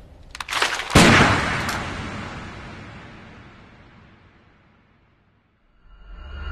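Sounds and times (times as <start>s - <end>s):
gunshots from film scene: 0.5s - 4.6s.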